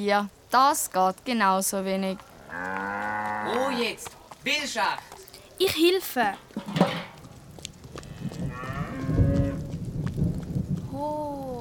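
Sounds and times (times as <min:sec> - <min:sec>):
speech: 0:00.0 - 0:02.8, 0:03.5 - 0:06.9
rumbling, rainy-sounding background: 0:00.0 - 0:05.2, 0:06.2 - 0:11.5
cow mooing: 0:02.4 - 0:03.8, 0:08.1 - 0:09.7.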